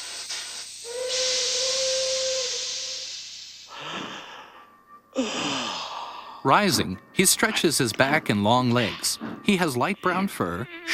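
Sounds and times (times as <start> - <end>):
steam puffing from a locomotive engine in a train yard: 0.0 - 3.6
speech: 5.2 - 5.7, 6.4 - 10.9.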